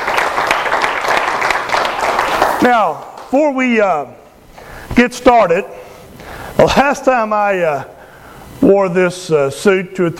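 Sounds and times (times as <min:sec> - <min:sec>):
congregation applauding inside a church: 0:00.0 - 0:03.8
speech: 0:02.6 - 0:04.2, 0:05.0 - 0:05.8, 0:06.6 - 0:08.0, 0:08.6 - 0:10.1.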